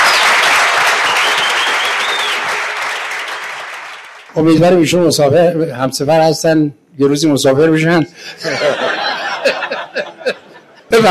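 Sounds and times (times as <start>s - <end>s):
audience applause honouring a doctor: 0.0s - 4.3s
speech: 4.4s - 11.0s
laughter: 8.2s - 11.0s.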